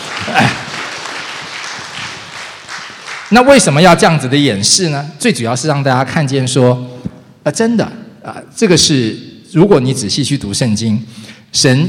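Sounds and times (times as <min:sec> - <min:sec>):
audience applause: 0:00.0 - 0:03.4
speech: 0:03.3 - 0:11.8.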